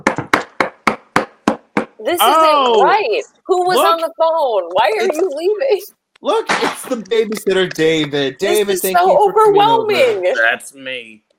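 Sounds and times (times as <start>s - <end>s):
sharp solid knocks on a wooden door: 0.0s - 2.0s
speech: 2.0s - 11.2s.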